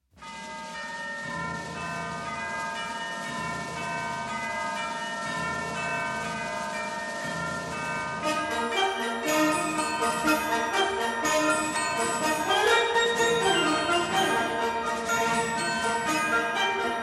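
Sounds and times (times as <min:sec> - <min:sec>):
musical clock: 0:00.2 - 0:17.0.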